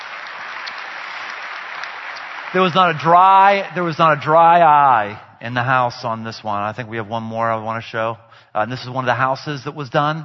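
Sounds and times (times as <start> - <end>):
audience applause: 0.0 - 4.7
speech: 2.5 - 10.2.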